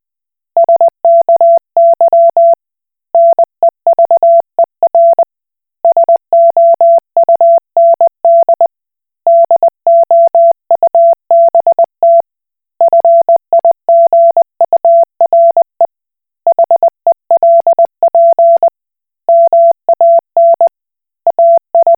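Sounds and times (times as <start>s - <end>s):
Koch Morse code beeps: 0.6s - 2.6s, 3.2s - 5.2s, 5.9s - 8.7s, 9.3s - 12.2s, 12.9s - 15.8s, 16.5s - 18.7s, 19.3s - 20.7s, 21.3s - 21.9s.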